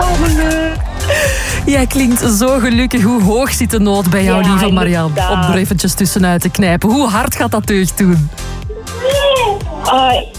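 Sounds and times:
soft low thumps: 0:00.0 - 0:09.8
speech: 0:01.7 - 0:10.3
young child babbling: 0:09.0 - 0:10.3.

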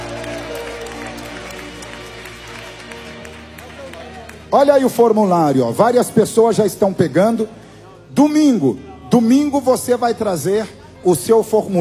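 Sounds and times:
audience applause: 0:00.0 - 0:05.2
speech: 0:04.5 - 0:11.7.

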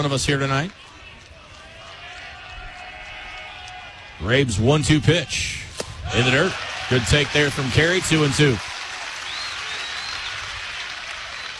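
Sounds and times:
speech: 0:00.0 - 0:00.9, 0:04.2 - 0:08.7
baseball crowd applause: 0:00.8 - 0:04.2, 0:06.1 - 0:11.5.

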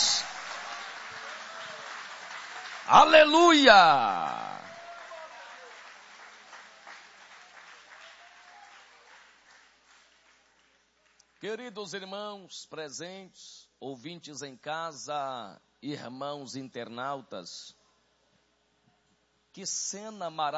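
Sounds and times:
audience clapping: 0:00.0 - 0:11.4
speech: 0:02.9 - 0:04.4, 0:11.4 - 0:17.8, 0:19.6 - 0:20.5.

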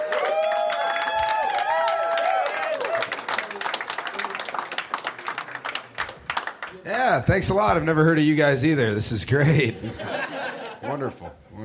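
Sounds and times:
whoops and high cheering shouts: 0:00.0 - 0:03.6
crowd applause: 0:00.0 - 0:07.1
speech: 0:06.8 - 0:11.6
laughter: 0:09.4 - 0:11.5.

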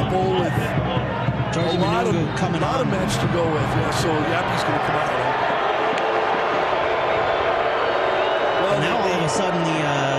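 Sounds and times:
sparse stadium crowd cheering: 0:00.0 - 0:10.1
speech: 0:01.6 - 0:05.6, 0:08.8 - 0:10.1.

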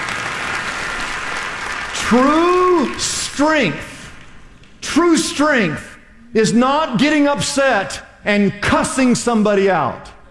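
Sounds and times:
audience clapping: 0:00.0 - 0:04.8
speech: 0:02.1 - 0:03.9, 0:05.0 - 0:10.1.

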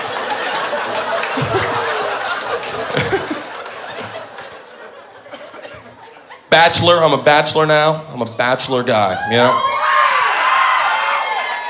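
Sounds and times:
audience cheering: 0:00.0 - 0:04.5, 0:09.0 - 0:11.6
audience applause: 0:00.0 - 0:04.8, 0:09.7 - 0:11.6
laughter: 0:00.0 - 0:06.5
speech: 0:06.6 - 0:09.7.

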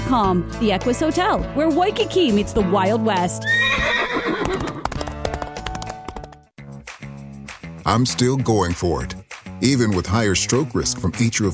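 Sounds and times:
speech: 0:00.1 - 0:04.2, 0:07.9 - 0:11.5
horse whinnying with high wavering neigh: 0:03.4 - 0:04.8
horse hooves clip-clopping: 0:04.2 - 0:06.4.

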